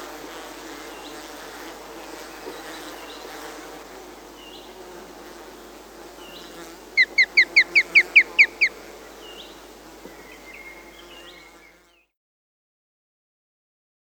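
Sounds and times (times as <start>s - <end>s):
osprey calling: 6.4s - 9.6s.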